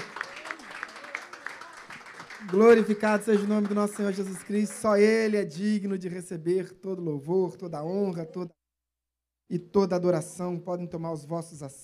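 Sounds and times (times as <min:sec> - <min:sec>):
audience applauding: 0:00.0 - 0:05.2
speech: 0:02.4 - 0:08.6, 0:09.5 - 0:11.8.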